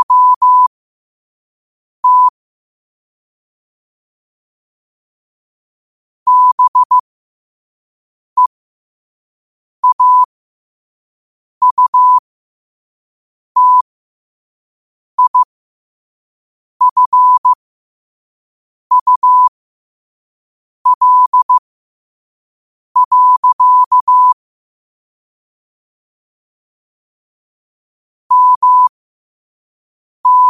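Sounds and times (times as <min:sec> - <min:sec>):
morse code at 5 wpm: 0:00.0 - 0:00.7, 0:02.0 - 0:02.3, 0:06.3 - 0:07.0, 0:09.8 - 0:10.3, 0:11.6 - 0:12.2, 0:13.6 - 0:13.8, 0:15.2 - 0:15.5, 0:16.8 - 0:17.6, 0:18.9 - 0:19.5, 0:20.9 - 0:21.6, 0:23.0 - 0:24.4, 0:28.3 - 0:28.9, 0:30.2 - 0:30.4.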